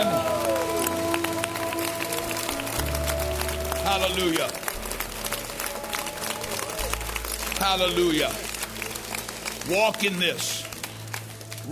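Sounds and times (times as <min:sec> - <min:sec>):
audience applause: 0:00.0 - 0:11.7
speech: 0:03.9 - 0:04.6, 0:07.6 - 0:08.5, 0:09.7 - 0:10.6.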